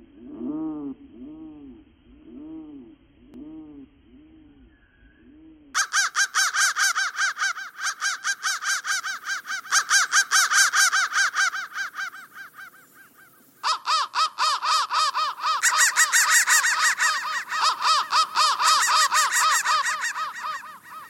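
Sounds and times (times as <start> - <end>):
crow giving harsh caws: 5.8 - 21.0.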